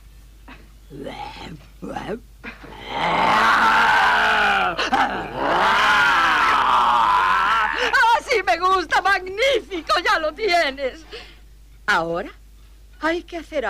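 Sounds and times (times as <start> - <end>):
speech: 0.9 - 2.3, 8.4 - 11.3, 11.9 - 12.4, 13.0 - 13.6
person imitating a tiger's growl: 2.7 - 7.9.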